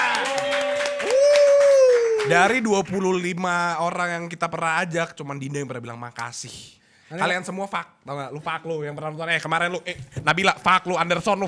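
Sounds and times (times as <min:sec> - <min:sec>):
crowd applause: 0:00.0 - 0:03.0
speech: 0:02.3 - 0:11.4.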